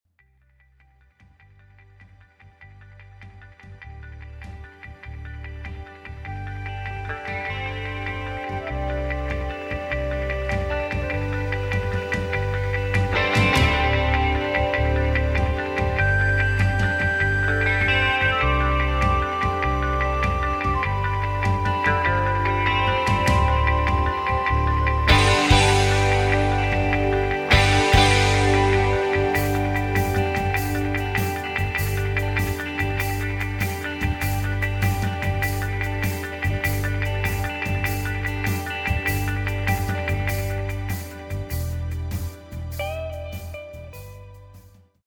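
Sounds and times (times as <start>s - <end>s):
backing track music without backing vocals: 1.2s - 45.0s.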